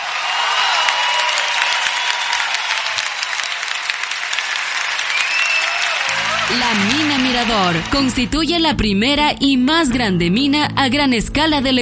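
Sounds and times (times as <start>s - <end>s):
audience applause: 0.0s - 8.5s
speech: 6.6s - 11.8s.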